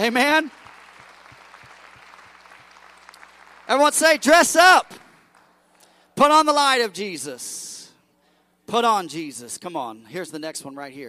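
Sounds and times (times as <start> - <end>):
speech: 0.0 - 0.6, 3.7 - 5.0, 6.2 - 7.8, 8.7 - 11.0
audience hand clapping: 0.0 - 6.0.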